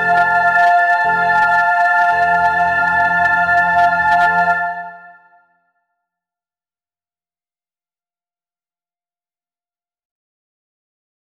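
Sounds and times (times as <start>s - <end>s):
soprano singing a Christmas song: 0.0s - 5.4s.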